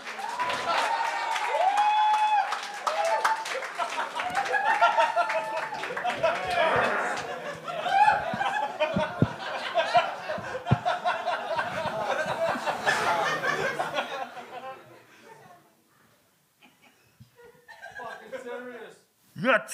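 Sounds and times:
audience applause: 0.0s - 14.6s
laughter: 2.8s - 15.6s, 16.6s - 18.8s.

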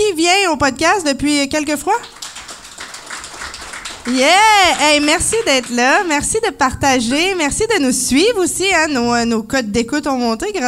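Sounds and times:
speech: 0.5s - 2.2s, 4.0s - 10.6s
crowd applauding: 2.0s - 6.3s.

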